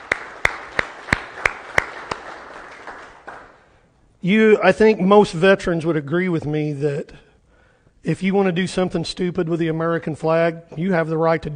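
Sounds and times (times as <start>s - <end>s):
congregation applause: 0.0s - 3.6s
speech: 4.2s - 7.2s, 8.0s - 11.5s.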